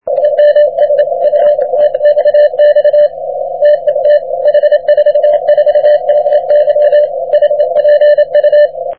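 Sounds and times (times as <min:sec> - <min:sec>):
40m band CW Morse code tones: 0:00.0 - 0:08.9.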